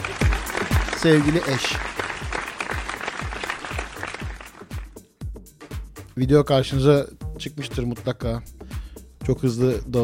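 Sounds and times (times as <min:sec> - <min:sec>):
applause: 0:00.0 - 0:05.0
speech: 0:01.0 - 0:01.9, 0:06.2 - 0:08.6, 0:09.3 - 0:10.0.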